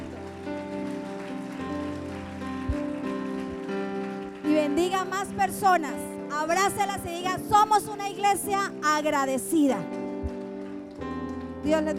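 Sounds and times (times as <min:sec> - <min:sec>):
audience applause: 0:00.0 - 0:05.6, 0:10.0 - 0:11.6
sustained keyboard chords: 0:00.0 - 0:11.9
speech: 0:04.8 - 0:10.0, 0:11.6 - 0:11.9.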